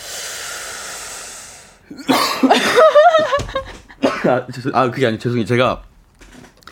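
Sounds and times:
steady low hiss: 0:00.0 - 0:02.1
speech: 0:01.9 - 0:02.9, 0:04.2 - 0:05.9
harsh raspy coughing: 0:01.9 - 0:03.1, 0:04.0 - 0:04.5
laughter: 0:02.1 - 0:04.7.

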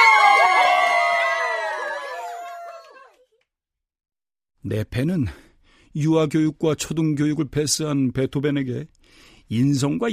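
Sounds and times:
cheering: 0:00.0 - 0:03.3
applause: 0:01.5 - 0:03.3
speech: 0:04.6 - 0:10.1.

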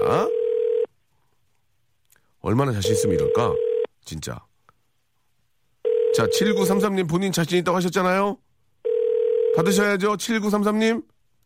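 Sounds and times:
steady single-pitched telephone tone: 0:00.0 - 0:00.9, 0:02.8 - 0:03.9, 0:05.8 - 0:06.8, 0:08.8 - 0:09.8
speech: 0:02.4 - 0:04.5, 0:06.2 - 0:08.4, 0:09.6 - 0:11.1.

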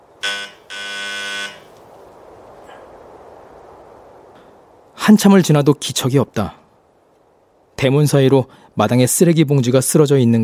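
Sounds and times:
hiss: 0:00.0 - 0:10.4
doorbell buzzing: 0:00.2 - 0:01.7
speech: 0:05.0 - 0:06.6, 0:07.8 - 0:10.4.

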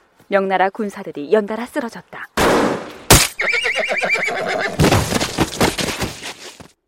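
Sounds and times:
speech: 0:00.3 - 0:02.4
enemy gunfire burst in a battle: 0:02.4 - 0:03.4
horse neighing after being hit by enemy gunfire: 0:03.3 - 0:05.1.

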